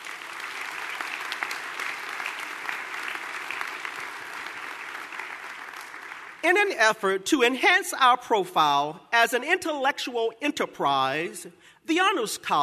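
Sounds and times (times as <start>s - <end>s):
audience round of applause: 0.0s - 6.4s
speech: 6.4s - 12.6s.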